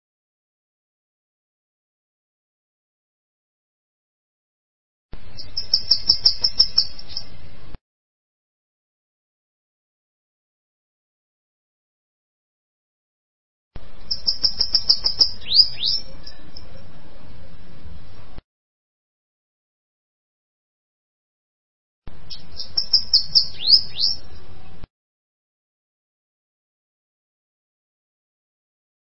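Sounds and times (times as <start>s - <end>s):
bananaquit singing: 5.2s - 7.7s, 13.8s - 18.4s, 22.1s - 24.9s.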